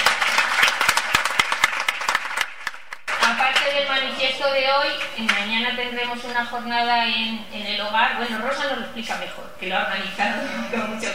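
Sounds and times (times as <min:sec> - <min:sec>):
audience applause: 0:00.0 - 0:03.4
speech: 0:04.2 - 0:11.1.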